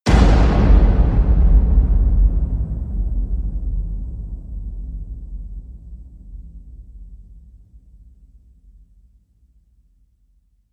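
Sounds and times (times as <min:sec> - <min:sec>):
big impact hit: 0:00.1 - 0:07.6.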